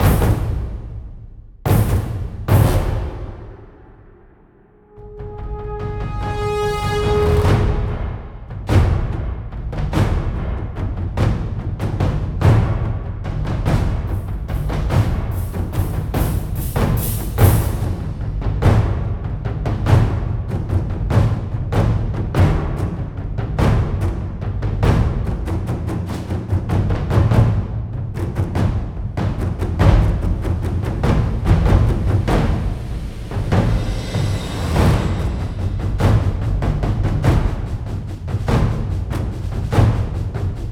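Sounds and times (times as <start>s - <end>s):
fight theme percussion: 0.0s - 40.6s.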